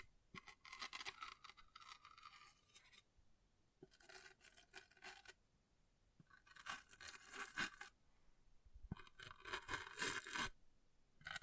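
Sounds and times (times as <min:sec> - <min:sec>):
object scratching: 0:00.0 - 0:03.1, 0:03.8 - 0:05.4, 0:06.2 - 0:08.0, 0:08.9 - 0:10.6.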